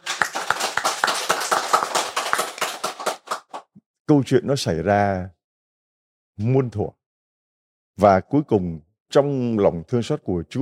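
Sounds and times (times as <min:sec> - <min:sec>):
audience clapping: 0:00.0 - 0:03.7
speech: 0:04.1 - 0:05.4, 0:06.4 - 0:07.0, 0:08.0 - 0:10.6.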